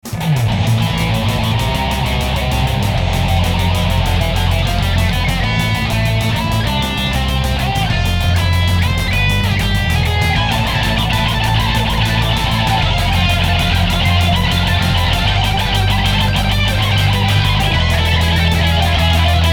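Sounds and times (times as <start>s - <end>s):
heavy metal music: 0.0s - 19.5s.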